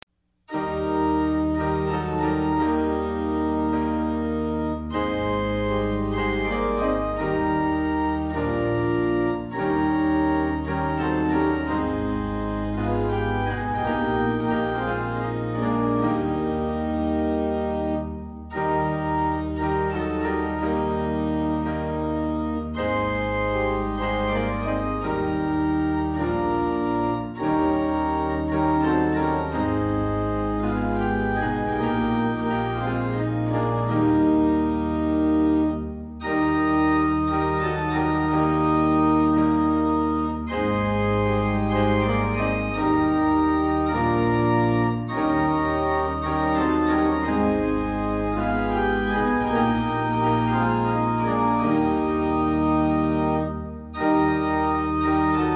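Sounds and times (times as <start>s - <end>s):
hymn tune: 0.0s - 55.5s.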